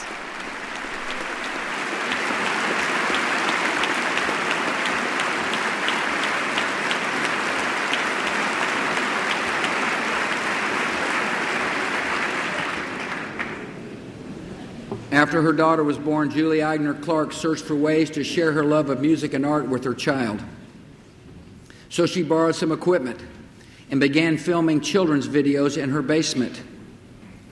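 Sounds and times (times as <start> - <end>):
hearty round of applause in chamber: 0.0 - 13.8
speech: 15.2 - 20.5, 22.0 - 26.7.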